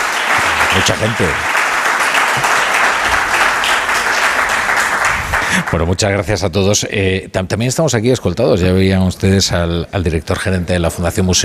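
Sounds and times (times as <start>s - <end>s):
audience applause: 0.0s - 6.0s
speech: 0.8s - 1.6s, 2.4s - 2.6s, 5.5s - 11.4s.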